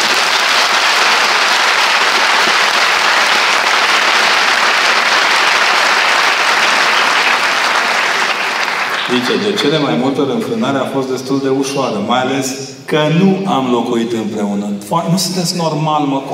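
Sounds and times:
audience applause: 0.0s - 10.1s
speech: 9.2s - 16.3s.

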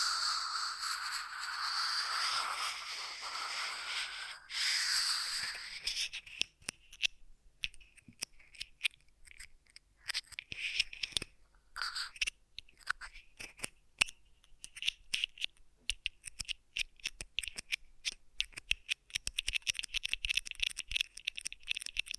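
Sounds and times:
ear massage rubbing hiss: 0.0s - 6.0s
ear massage scratchy snips and crackles: 0.0s - 22.1s.

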